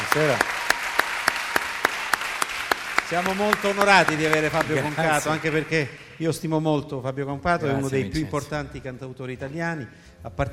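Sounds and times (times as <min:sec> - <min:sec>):
audience applause: 0:00.0 - 0:06.6
speech: 0:00.2 - 0:00.6, 0:03.1 - 0:10.5.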